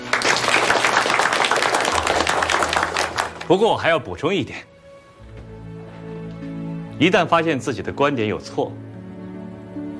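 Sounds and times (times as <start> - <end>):
group of students applauding: 0.0 - 3.6
speech: 3.5 - 4.7, 7.0 - 8.8.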